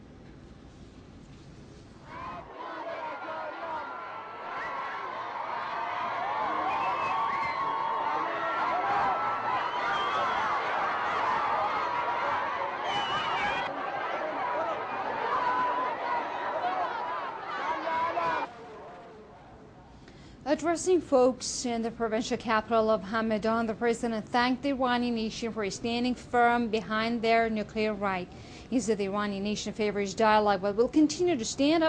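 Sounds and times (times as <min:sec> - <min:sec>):
large crowd in Hamadan, Iran chanting and cheering to welcome the president: 0:02.1 - 0:19.1
speech: 0:20.6 - 0:31.8.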